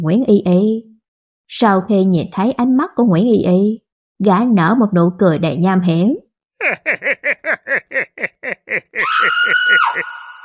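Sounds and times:
speech: 0.0 - 0.9, 1.5 - 10.2
laughter: 6.6 - 10.4
woman's terrified scream echoing through a villa: 8.9 - 10.4.

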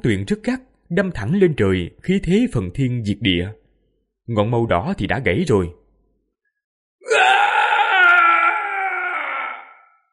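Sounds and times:
speech: 0.0 - 3.6, 4.3 - 5.8
demon king's anguished, despairing, high-pitched shrieking scream: 7.0 - 10.1.

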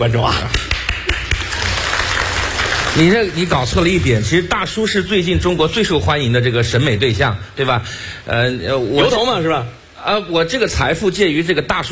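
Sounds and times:
speech: 0.0 - 1.2, 2.9 - 11.9
live talk show audience applause: 0.7 - 4.0.

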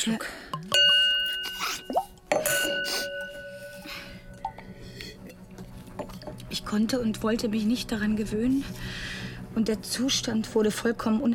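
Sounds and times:
speech: 0.0 - 0.8, 6.7 - 11.3
wine glass clink: 0.6 - 4.7
wine glass ringing: 0.7 - 5.4.

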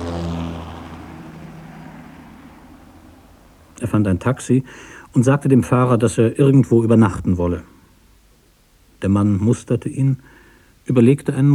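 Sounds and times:
helicopter from Kennedy Airport landing on a skyscraper roof in Manhattan: 0.0 - 4.1
speech: 3.8 - 7.8, 9.0 - 11.5.

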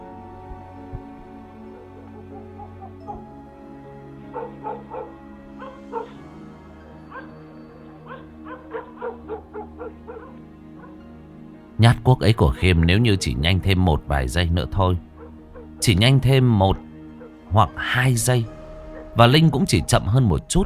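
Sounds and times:
yellow dog barking frantically: 4.3 - 6.2, 8.1 - 11.0, 15.2 - 15.8
speech: 11.8 - 15.1, 15.8 - 16.9, 17.5 - 18.6, 19.2 - 20.6.

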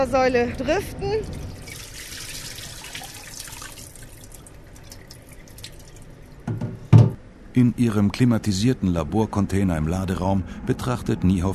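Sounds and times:
speech: 0.0 - 1.4, 7.6 - 11.5
water dripping from a plankton net: 1.3 - 6.5.

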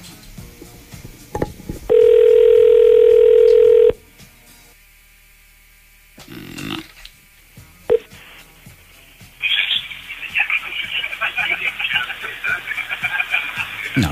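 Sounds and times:
telephone ringing on a live call-in line: 1.9 - 4.0
laughter: 9.4 - 14.1.

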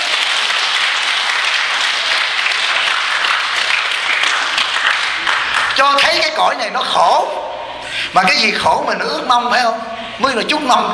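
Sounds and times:
audience applause at a Buddhist teaching on consciousness-only doctrine: 0.0 - 6.0
speech: 5.8 - 7.4, 8.1 - 10.9.

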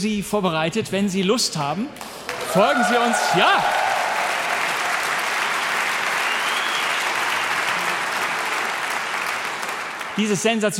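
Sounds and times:
speech: 0.0 - 3.8, 10.2 - 10.7
concert audience applause for an orchestra: 2.0 - 10.7.

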